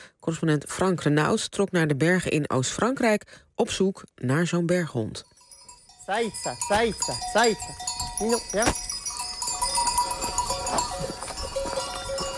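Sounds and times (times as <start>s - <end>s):
speech: 0.2s - 5.3s, 6.1s - 8.9s
bells jingling and clanking among the flock: 5.2s - 12.3s
sheep footsteps shuffling: 5.5s - 12.3s.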